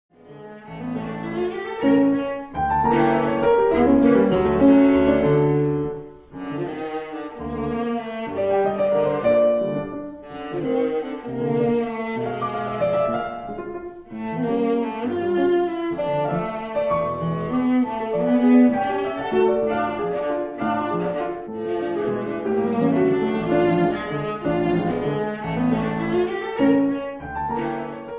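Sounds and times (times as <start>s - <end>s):
piano: 0.1s - 28.1s
viola: 0.1s - 28.1s.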